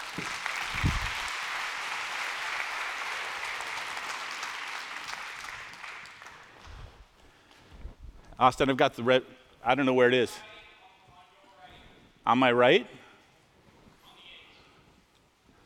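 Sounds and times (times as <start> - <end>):
audience applauding at a church recovery-ministry gathering to welcome a guest: 0.0 - 6.8
speech: 8.4 - 10.5, 12.3 - 13.0.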